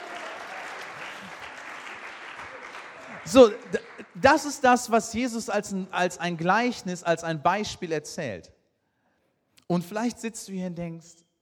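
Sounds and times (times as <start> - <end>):
audience applause: 0.0 - 4.2
speech: 3.2 - 8.6, 9.7 - 11.2.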